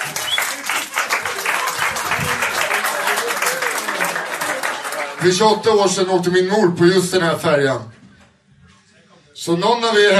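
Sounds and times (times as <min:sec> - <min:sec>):
crowd applauding: 0:00.0 - 0:06.0
speech: 0:05.2 - 0:07.9, 0:09.4 - 0:10.1.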